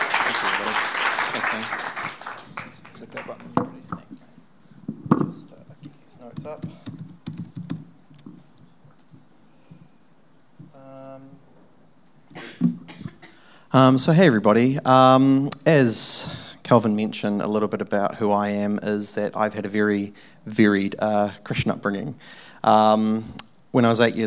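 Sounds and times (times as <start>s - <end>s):
audience applause: 0.0s - 3.6s
speech: 0.4s - 1.9s, 13.8s - 24.2s.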